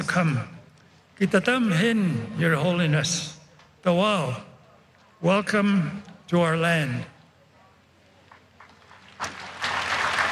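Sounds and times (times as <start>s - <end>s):
speech: 0.2s - 0.6s, 1.2s - 4.5s, 5.2s - 7.1s
Pope clapping his hands: 8.3s - 10.3s.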